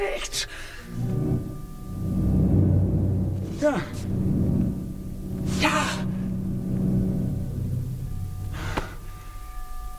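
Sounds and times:
speech: 0:00.0 - 0:01.1, 0:03.6 - 0:04.0
faint tonal hum: 0:00.0 - 0:09.9
brief breathy burst: 0:00.5 - 0:09.1
deep growling rumble from deep in the earth at St. Jago, Chile: 0:00.8 - 0:09.2.

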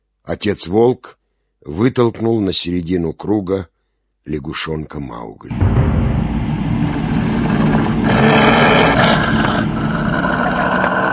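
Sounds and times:
speech: 0:00.3 - 0:06.0
deep muffled tiger roar from behind a rock: 0:05.5 - 0:11.1.

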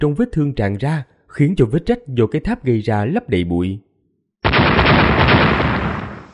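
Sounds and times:
speech: 0:00.0 - 0:03.9
explosions: 0:04.4 - 0:06.3.

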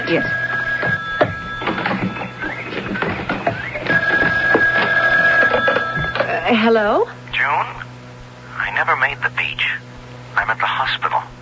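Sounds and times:
telephone ringing: 0:00.0 - 0:06.6
speech: 0:00.1 - 0:01.0, 0:06.5 - 0:07.8, 0:08.7 - 0:11.3.

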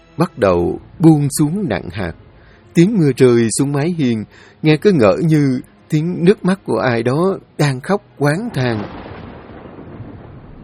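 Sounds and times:
speech: 0:00.2 - 0:09.1
thunder from lightning strikes during a night rainstorm: 0:08.4 - 0:10.6.

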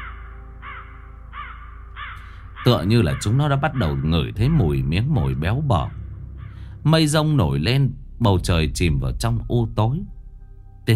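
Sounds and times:
flock of crows cawing: 0:00.0 - 0:06.9
speech: 0:02.6 - 0:06.0, 0:06.8 - 0:10.2.

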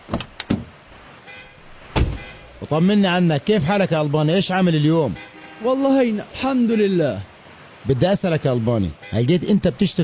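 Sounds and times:
car door thuds as a man climbs into a car: 0:00.0 - 0:00.8, 0:01.9 - 0:02.4
speech: 0:02.7 - 0:10.0.

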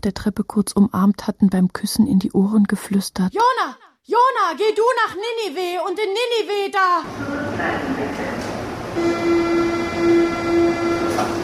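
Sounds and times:
speech: 0:00.0 - 0:09.6
subway train pulling into a station: 0:07.0 - 0:11.4
sustained metallic whine: 0:07.2 - 0:11.4.

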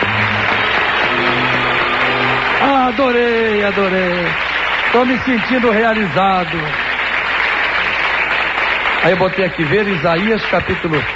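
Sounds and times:
sustained low musical tones: 0:00.0 - 0:03.6
audience applause at a religious talk: 0:00.0 - 0:11.1
speech: 0:02.9 - 0:06.9, 0:09.0 - 0:11.1.

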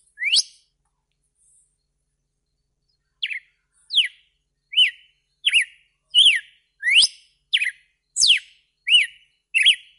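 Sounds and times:
red-cowled cardinal whistled song: 0:00.0 - 0:00.7, 0:02.4 - 0:09.9.

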